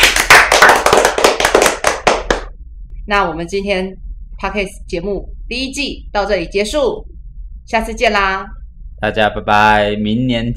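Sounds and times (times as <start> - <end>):
applause: 0.0 - 2.5
speech: 3.1 - 7.1, 7.7 - 10.5.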